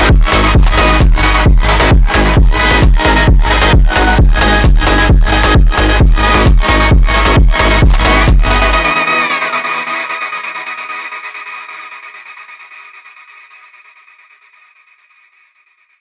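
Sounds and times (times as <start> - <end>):
phonk music: 0.0 - 12.7.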